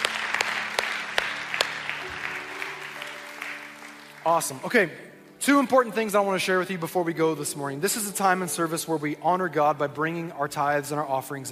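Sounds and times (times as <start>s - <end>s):
church congregation applauding during a Sunday morning service: 0.0s - 5.8s
speech: 4.2s - 11.5s.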